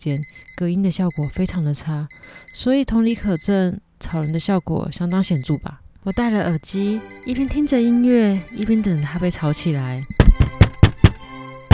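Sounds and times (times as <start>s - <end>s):
speech: 0.0s - 10.2s
impatient heavy knocking on a door: 10.1s - 11.7s.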